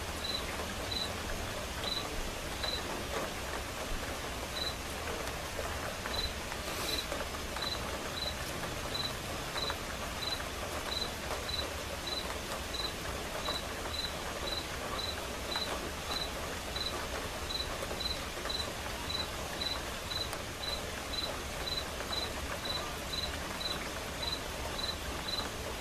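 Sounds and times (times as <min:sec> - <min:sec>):
soft rain: 0:00.0 - 0:25.8
crickets chirping: 0:00.2 - 0:01.1, 0:04.6 - 0:04.8, 0:07.6 - 0:25.8.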